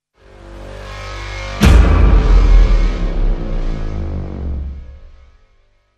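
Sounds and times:
sting hit sound effect: 1.6 - 5.4.

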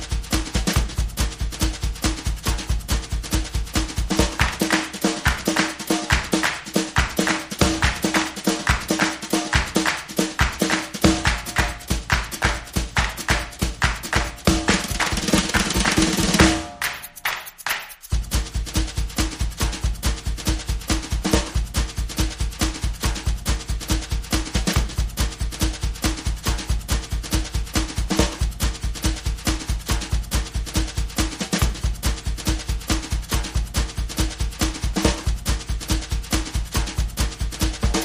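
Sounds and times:
drums: 0.0 - 38.0
claps: 4.1 - 18.1, 35.0 - 35.3.

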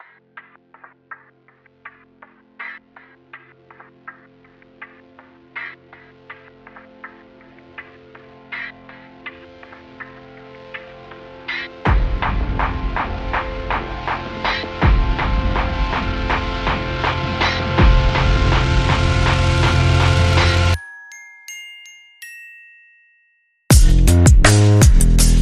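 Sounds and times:
groove with bass: 11.8 - 20.8, 23.7 - 25.4.

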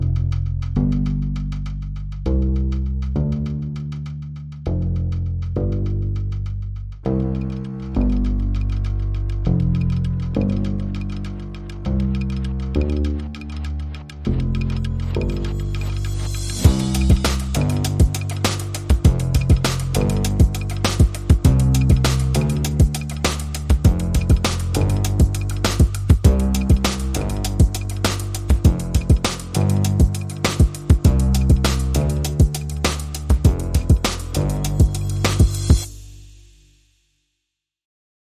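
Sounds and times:
bass: 0.0 - 36.8
drums: 14.4 - 36.3.

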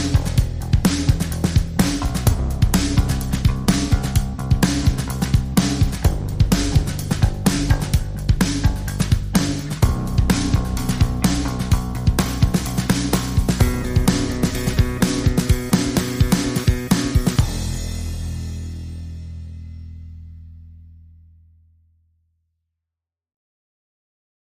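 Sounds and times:
groove music: 0.0 - 19.6.

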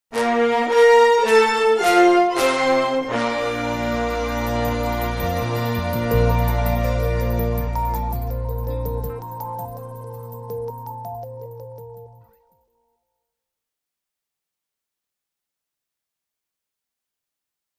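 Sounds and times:
brass phrase: 0.1 - 9.2.

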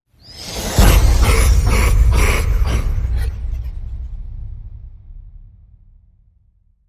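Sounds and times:
slow evil laugh: 0.6 - 4.0.

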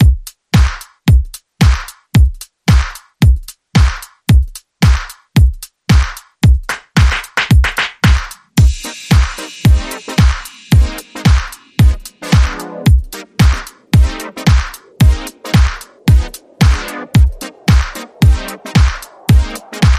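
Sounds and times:
funk era rhythm: 0.0 - 19.9.

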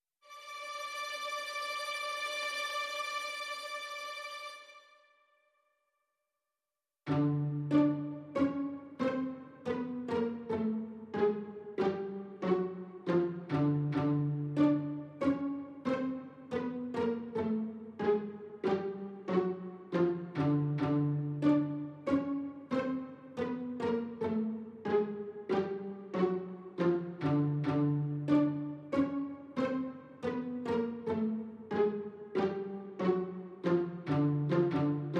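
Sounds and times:
strings: 0.2 - 5.2, 7.1 - 35.1.

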